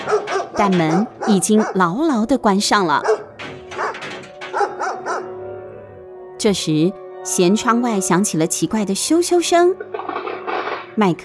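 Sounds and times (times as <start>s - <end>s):
big dog barking: 0.0s - 6.2s
speech: 0.1s - 3.2s, 6.4s - 10.2s, 11.0s - 11.2s.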